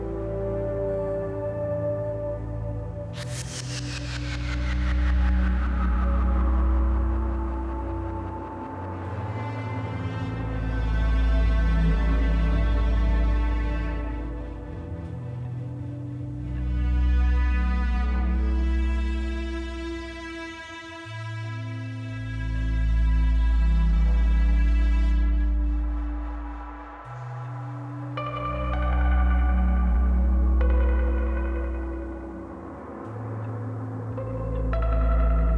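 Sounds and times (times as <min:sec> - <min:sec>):
low morning noise: 0:00.0 - 0:35.5.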